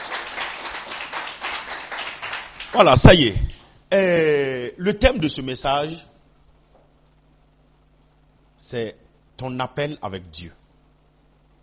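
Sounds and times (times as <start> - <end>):
church congregation clapping in praise during a service: 0.0 - 3.7
speech: 2.7 - 6.1, 8.6 - 10.6.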